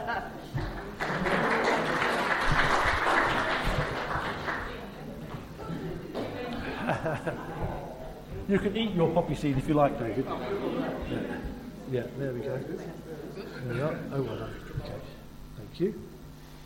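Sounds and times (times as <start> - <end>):
laughter: 0.0 - 4.9, 5.6 - 8.7, 10.1 - 11.9
crowd group applause: 0.6 - 5.0
speech: 7.0 - 16.1.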